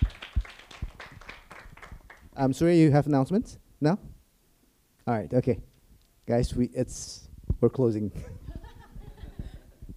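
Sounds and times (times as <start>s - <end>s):
scattered clapping from a small audience: 0.0s - 2.4s
speech: 2.4s - 4.2s, 5.1s - 5.7s, 6.3s - 8.4s.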